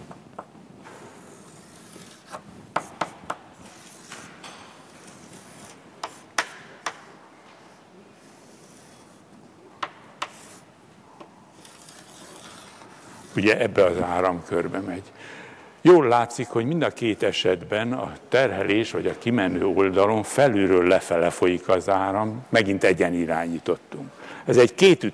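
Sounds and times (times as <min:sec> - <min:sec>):
pen drawing a circuit diagram on a board: 0:00.9 - 0:07.0, 0:08.2 - 0:10.7, 0:11.5 - 0:14.9
speech: 0:13.4 - 0:25.1.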